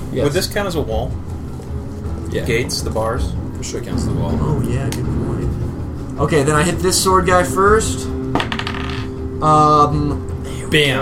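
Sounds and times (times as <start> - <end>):
speech: 0.1 - 1.4, 2.3 - 5.4, 6.2 - 8.5, 9.4 - 11.0
dice rolling: 8.4 - 9.1.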